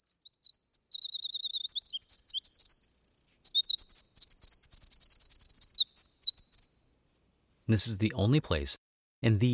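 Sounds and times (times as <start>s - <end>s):
winter wren singing: 0.0s - 7.3s
speech: 7.7s - 9.5s.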